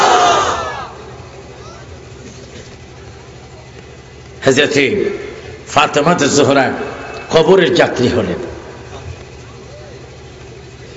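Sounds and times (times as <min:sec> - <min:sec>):
crowd at a religious gathering shouting in answer to a preacher: 0:00.0 - 0:02.1, 0:06.5 - 0:10.2
speech: 0:04.4 - 0:08.5.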